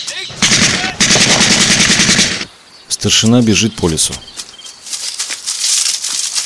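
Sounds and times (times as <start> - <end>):
automatic gunfire from a German soldier's weapon in a Soviet war film: 0.3 - 2.5
speech: 3.0 - 4.4.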